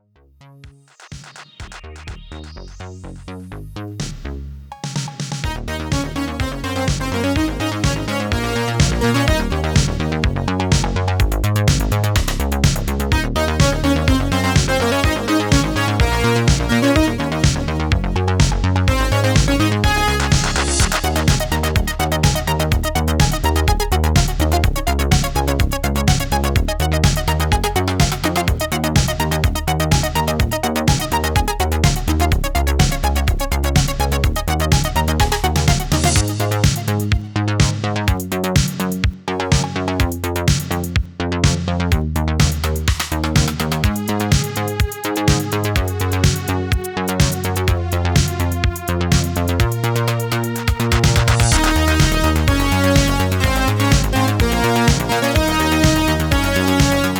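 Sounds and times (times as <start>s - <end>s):
instrumental dub music: 0.5s - 57.1s.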